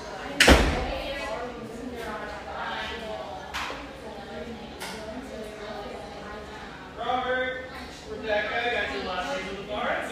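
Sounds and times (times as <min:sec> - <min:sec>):
café voices murmuring: 0:00.0 - 0:10.1
people speaking: 0:00.0 - 0:10.1.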